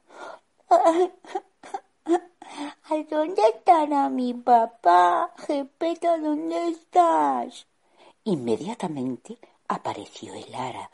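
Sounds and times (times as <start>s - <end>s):
Pinocchio the wooden puppet crying alone at home: 0.6s - 3.8s
speech: 0.9s - 1.3s, 2.9s - 10.9s.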